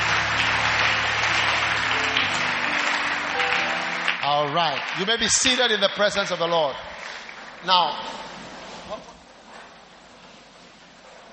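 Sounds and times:
audience applause: 0:00.0 - 0:08.7
speech: 0:04.4 - 0:06.9, 0:07.6 - 0:09.1.

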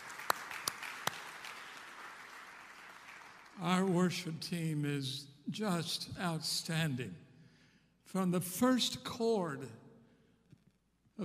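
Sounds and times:
audience applause: 0:00.0 - 0:03.6
speech: 0:03.6 - 0:07.2, 0:08.1 - 0:09.8.

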